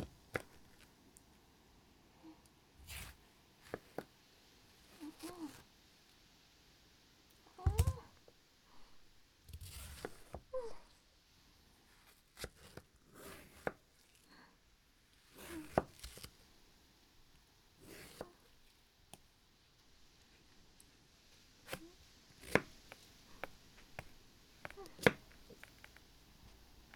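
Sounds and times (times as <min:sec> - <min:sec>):
watermelon being cut: 0:02.8 - 0:04.1, 0:04.9 - 0:05.7, 0:07.6 - 0:08.1, 0:09.5 - 0:10.8, 0:12.0 - 0:14.2, 0:15.2 - 0:16.4, 0:17.8 - 0:18.5, 0:21.6 - 0:25.9.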